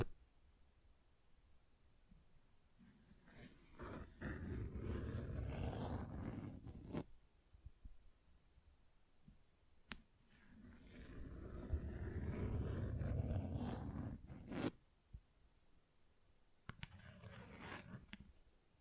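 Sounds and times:
rough scratching: 0:03.0 - 0:07.0, 0:10.4 - 0:14.8, 0:16.8 - 0:18.2.

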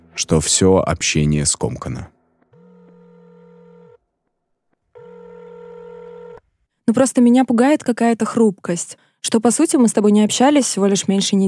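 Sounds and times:
speech: 0:00.2 - 0:02.2, 0:06.9 - 0:11.4
phone call ringing tone: 0:02.5 - 0:04.0, 0:04.9 - 0:06.4.

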